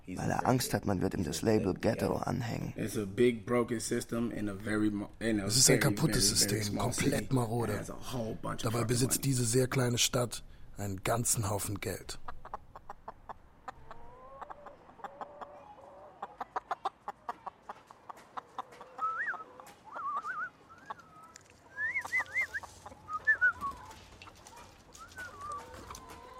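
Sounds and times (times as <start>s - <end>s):
speech: 0.1s - 12.3s
chickens clucking and squawking: 12.1s - 26.3s.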